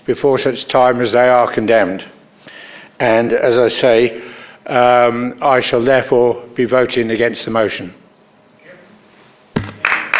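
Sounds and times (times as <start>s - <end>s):
speech: 0.0s - 2.2s, 3.0s - 8.0s
clapping: 9.6s - 10.1s.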